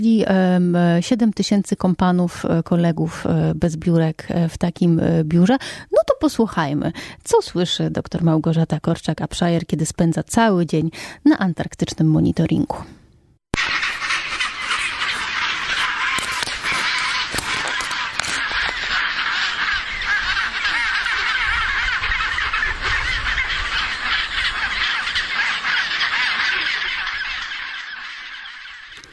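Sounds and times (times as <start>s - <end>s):
speech: 0.0s - 13.0s
chinstrap penguins calling: 13.6s - 29.1s.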